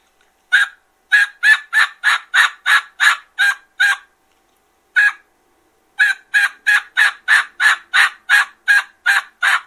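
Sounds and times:
turkey yelps made on a diaphragm mouth call: 0:00.5 - 0:04.1, 0:05.0 - 0:05.3, 0:06.0 - 0:09.6.

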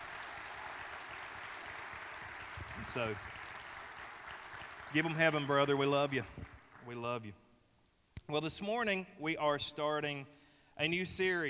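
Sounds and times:
audience applause: 0:00.0 - 0:06.8
speech: 0:02.8 - 0:03.4, 0:04.9 - 0:07.4, 0:08.3 - 0:11.4.

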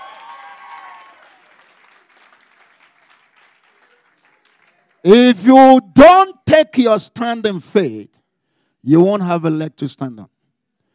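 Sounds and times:
audience applause: 0:00.0 - 0:05.1
speech: 0:05.0 - 0:08.2, 0:08.8 - 0:10.3.

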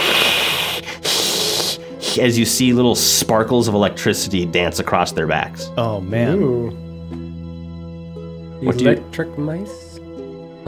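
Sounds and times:
lizards hissing: 0:00.0 - 0:02.6
speech: 0:02.1 - 0:07.3, 0:08.6 - 0:09.8.

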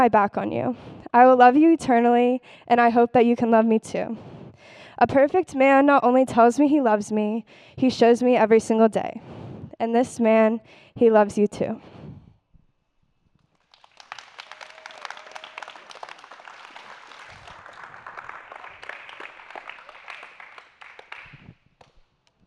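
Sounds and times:
speech: 0:00.0 - 0:11.9
audience applause: 0:13.6 - 0:21.9.

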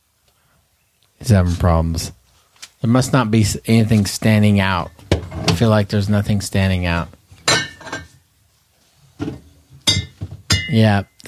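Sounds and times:
speech: 0:01.2 - 0:02.2, 0:02.8 - 0:05.0, 0:05.6 - 0:07.2, 0:10.8 - 0:11.2
glass bottles clinking inside a fridge: 0:07.5 - 0:08.1, 0:09.8 - 0:10.8.

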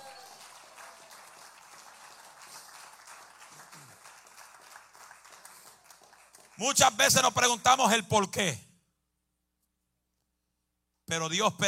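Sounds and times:
crowd applauding: 0:00.0 - 0:07.0
speech: 0:06.6 - 0:08.6, 0:11.1 - 0:11.6.

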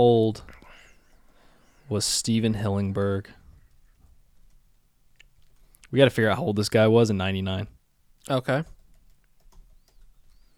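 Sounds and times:
speech: 0:00.0 - 0:00.6, 0:01.9 - 0:03.4, 0:05.9 - 0:08.8
typing on a computer keyboard: 0:08.6 - 0:10.4.

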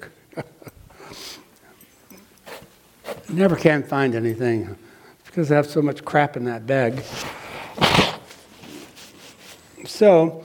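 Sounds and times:
person blowing nose: 0:01.0 - 0:01.5, 0:02.4 - 0:03.3, 0:07.1 - 0:09.6
speech: 0:03.3 - 0:04.8, 0:05.4 - 0:07.4, 0:10.0 - 0:10.4.

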